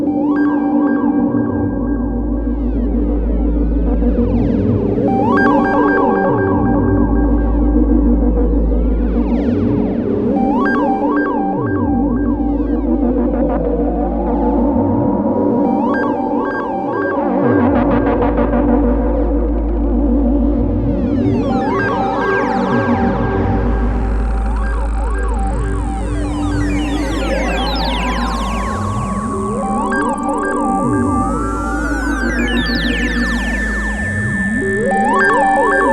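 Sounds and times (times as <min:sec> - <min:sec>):
sci-fi scanner sounds: 0:00.1 - 0:35.9.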